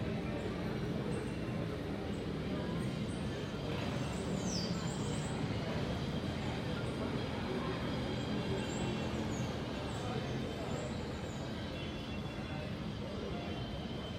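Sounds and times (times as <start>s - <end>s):
crowd chatter in Parque Colón, Santo Domingo: 0.0s - 14.1s.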